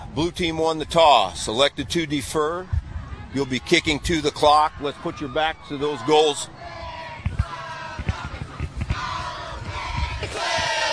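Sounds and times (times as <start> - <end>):
speech: 0.2 - 6.6
group of players cheering in a mock celebration after coin toss: 3.0 - 10.9
steady crowd roar: 3.0 - 10.9.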